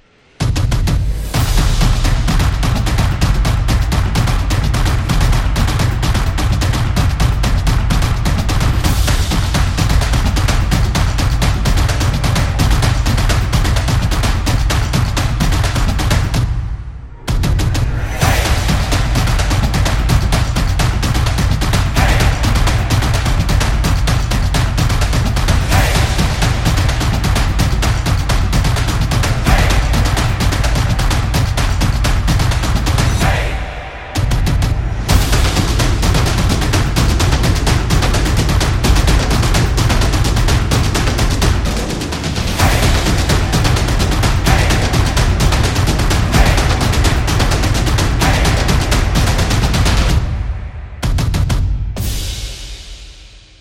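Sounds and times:
football percussion background music inspired by samba rhythm: 0.4 - 16.6, 17.3 - 53.1.

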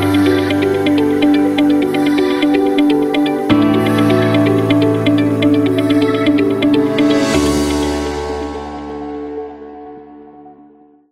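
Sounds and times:
corporate tech music: 0.0 - 8.8.

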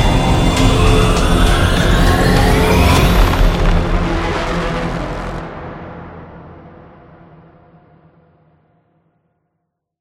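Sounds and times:
tension music: 0.0 - 7.5.

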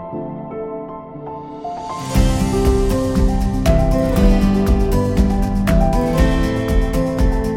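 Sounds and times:
upbeat indie folk music: 2.2 - 7.5.

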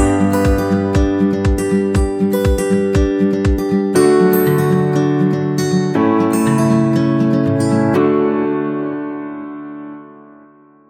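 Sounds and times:
acoustic guitar: 0.0 - 10.7.

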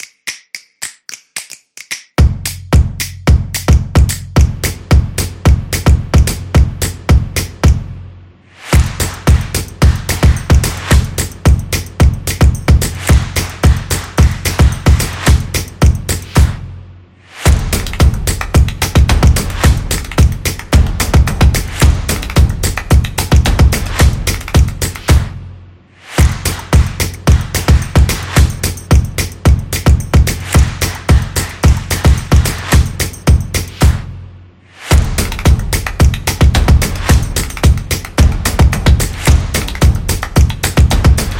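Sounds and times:
clap: 0.0 - 7.9, 8.6 - 16.7, 17.3 - 25.4, 26.0 - 34.2, 34.8 - 41.3
energetic percussion: 0.0 - 8.0, 8.6 - 41.3.

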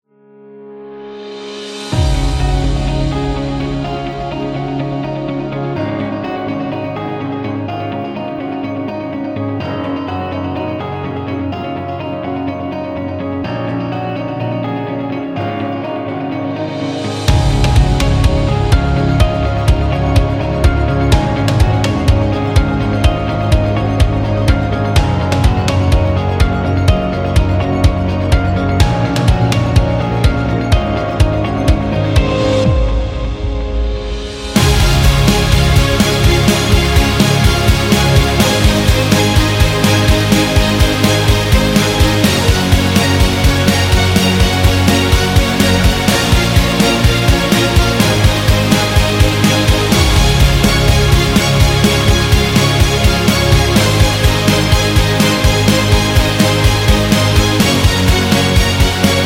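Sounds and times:
dynamic upbeat music: 1.0 - 59.2.

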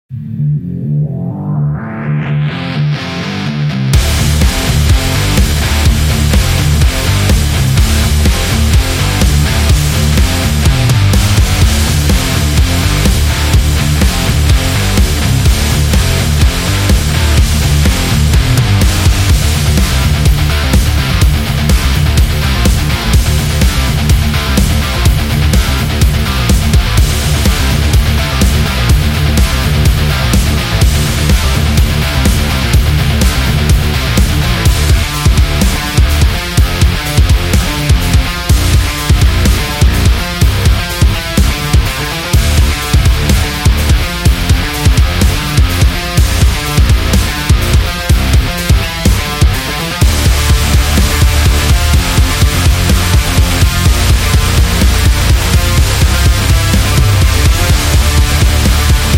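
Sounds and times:
hard rock heavy metal music: 0.6 - 59.1.

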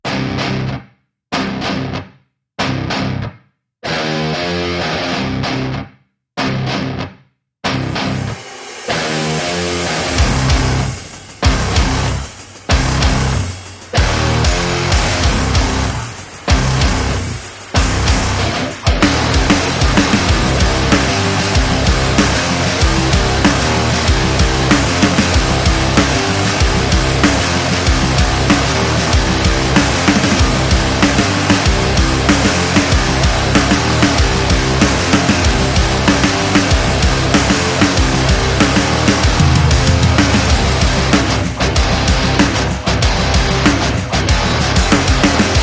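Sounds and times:
aggressive alternative metal music: 0.1 - 0.8, 2.6 - 45.6.

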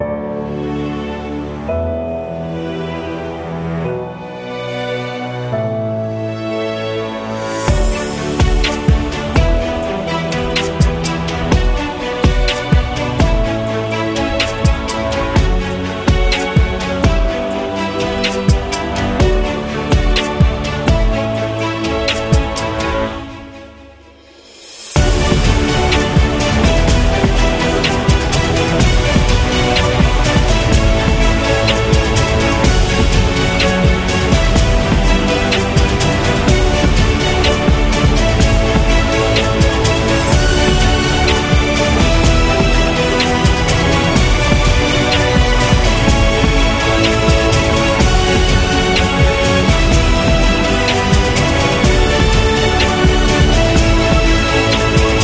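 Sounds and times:
cinematic hip hop music: 0.1 - 55.2.

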